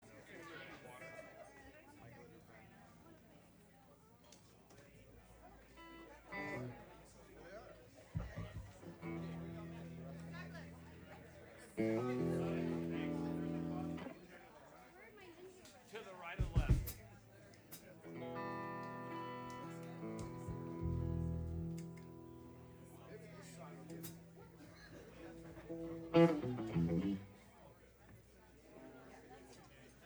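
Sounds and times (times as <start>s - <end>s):
instrument tuning: 5.8s - 6.8s, 8.2s - 14.1s, 18.0s - 27.4s.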